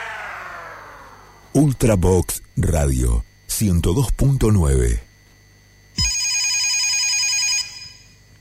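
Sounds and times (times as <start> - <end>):
speech: 1.6 - 5.1
telephone ringing with a warbling electronic tone: 6.0 - 8.2.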